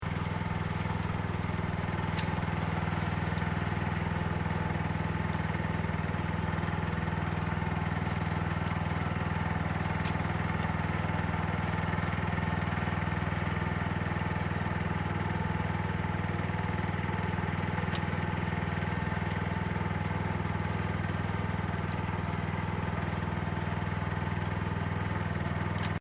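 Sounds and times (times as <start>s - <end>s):
Japanese rice planting tractor with mechanical planter operating in rice field: 0.0s - 25.9s.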